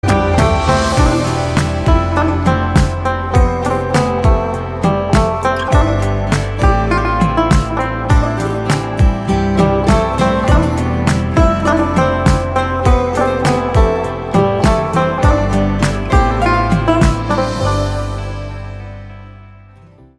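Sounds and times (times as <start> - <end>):
instrumental song: 0.0 - 20.1.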